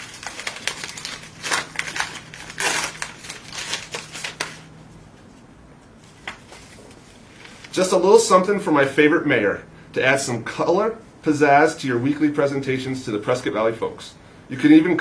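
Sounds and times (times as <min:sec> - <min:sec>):
greeting card paper crinkling and rustling as it is opened: 0:00.0 - 0:04.7
speech: 0:07.8 - 0:14.9.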